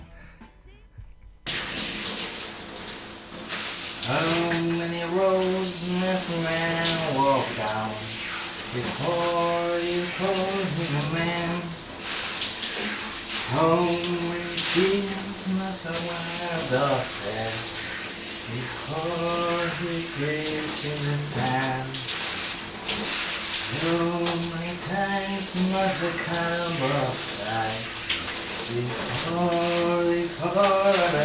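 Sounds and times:
shower water running: 1.0 - 31.2
person singing in the shower: 4.0 - 8.1, 8.7 - 11.8, 13.5 - 17.7, 18.5 - 22.1, 23.7 - 27.9, 28.7 - 31.2
speech: 8.7 - 11.7, 13.5 - 17.8, 18.5 - 22.1, 23.8 - 27.8, 28.7 - 31.2.

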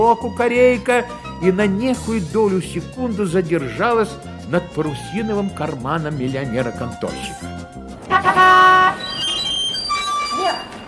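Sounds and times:
speech: 0.0 - 8.6
street noise: 6.2 - 10.8
bus horn honking: 8.0 - 10.8.

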